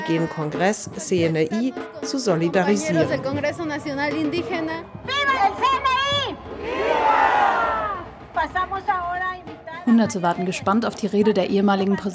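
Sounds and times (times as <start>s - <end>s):
speech: 0.1s - 7.5s, 8.4s - 12.1s
protest march crowd shouting: 5.0s - 8.5s
protest march crowd chanting: 6.4s - 8.3s.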